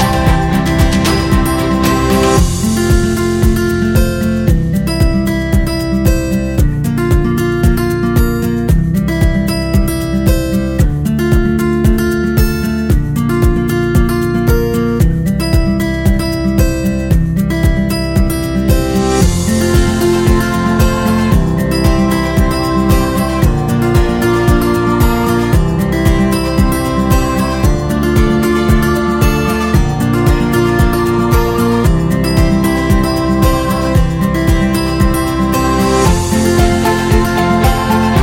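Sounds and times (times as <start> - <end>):
upbeat acoustic guitar: 0.0 - 38.2.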